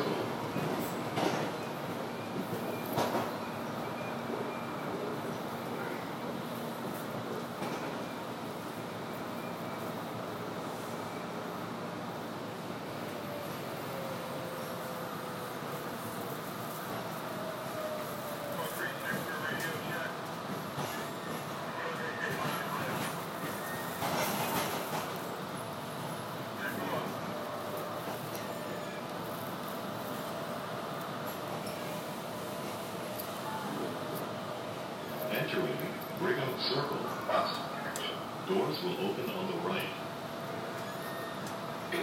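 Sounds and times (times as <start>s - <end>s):
train rolling between stops with low rumble and rattling clatter: 0.0s - 42.0s
thin high-pitched train wheel squeals: 40.8s - 41.5s.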